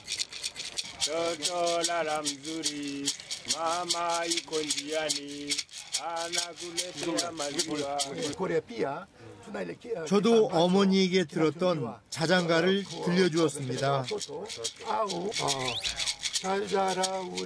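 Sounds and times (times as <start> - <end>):
baby rattle being shaken: 0.0 - 8.4, 12.2 - 17.4
speech: 1.1 - 17.4.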